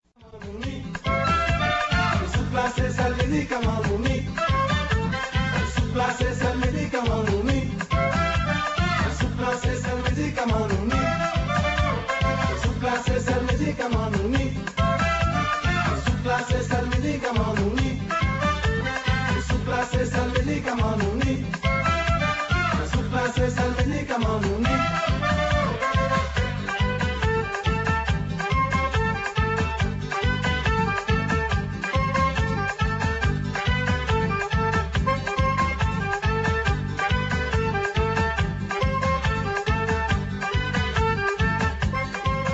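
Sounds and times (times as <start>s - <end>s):
zouk music: 0.1s - 42.5s.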